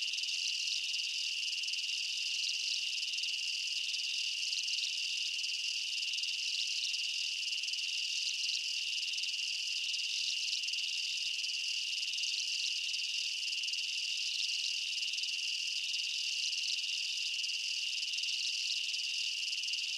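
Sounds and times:
insects chirping in a jungle at night: 0:00.0 - 0:19.9.

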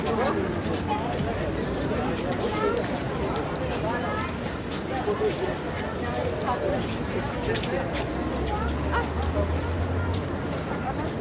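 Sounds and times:
large international crowd waiting for lifts at the Eiffel Tower: 0:00.0 - 0:11.1.

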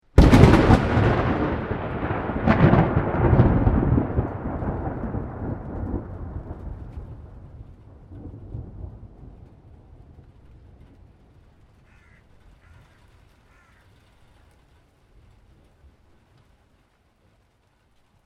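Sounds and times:
loud close thunder clap: 0:00.1 - 0:10.8
crow cawing: 0:11.8 - 0:14.0.

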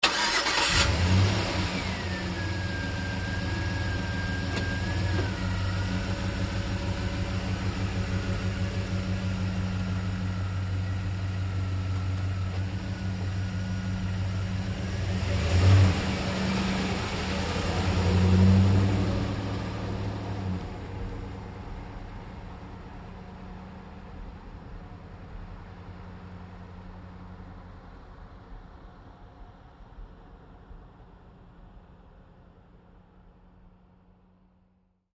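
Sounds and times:
GMC Savana truck starting: 0:00.0 - 0:22.9
GMC Savana truck driving away slowly: 0:00.1 - 0:31.1.

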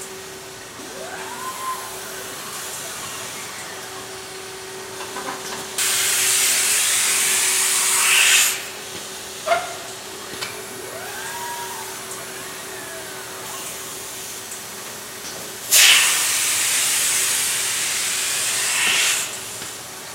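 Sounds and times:
giant blender running in a bottling plant factory: 0:00.2 - 0:14.1, 0:15.7 - 0:19.9.

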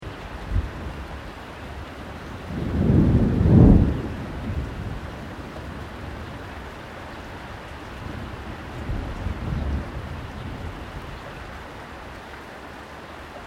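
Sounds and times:
rain: 0:00.0 - 0:13.4
distant low thunder: 0:02.4 - 0:06.7, 0:07.9 - 0:11.2.

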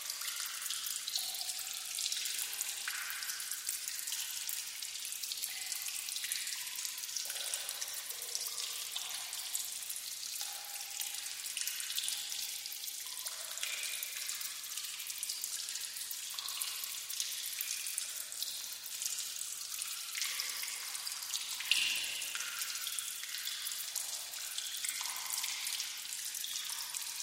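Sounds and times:
water dripping in a cave with reverb: 0:00.0 - 0:27.2.

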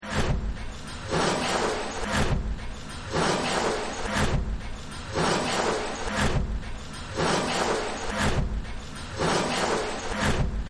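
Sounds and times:
factory noise: 0:00.0 - 0:10.6.

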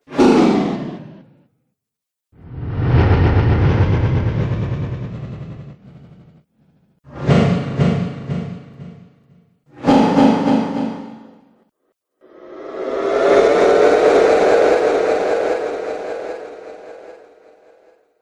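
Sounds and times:
vibrating delay whooshes: 0:02.4 - 0:06.4, 0:07.1 - 0:11.3, 0:12.4 - 0:18.0.

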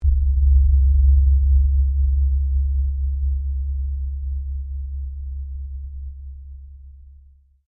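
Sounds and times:
low frequency metallic strike: 0:00.0 - 0:04.6.

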